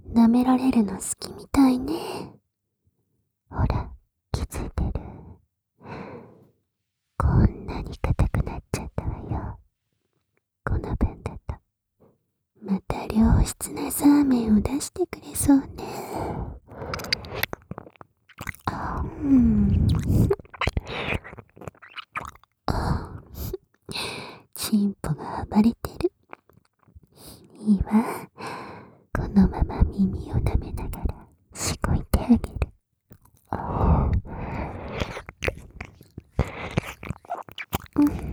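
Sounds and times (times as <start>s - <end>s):
sticky whispering: 0.0s - 2.4s, 3.5s - 5.2s, 7.2s - 9.6s, 10.7s - 11.6s, 12.6s - 16.1s, 18.7s - 20.4s, 24.6s - 26.1s, 27.4s - 28.3s, 29.2s - 32.8s, 33.5s - 36.2s, 38.0s - 38.3s
ear licking: 16.7s - 22.6s, 33.1s - 38.3s.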